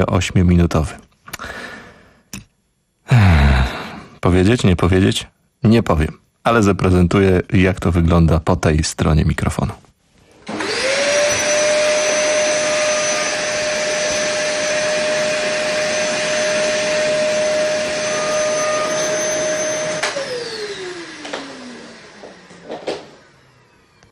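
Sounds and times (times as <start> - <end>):
speech: 0.0 - 1.6, 4.2 - 9.8
vacuum cleaner running in a radio studio: 10.4 - 24.1.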